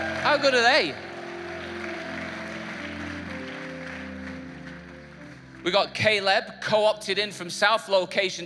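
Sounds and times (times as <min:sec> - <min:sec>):
audience applause for worship team: 0:00.0 - 0:05.6
speech: 0:00.3 - 0:01.1, 0:05.6 - 0:08.4.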